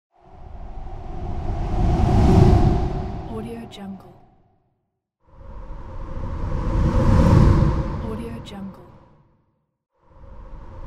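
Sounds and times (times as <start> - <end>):
ghost fly-by whoosh: 0.2 - 4.4, 5.3 - 9.2.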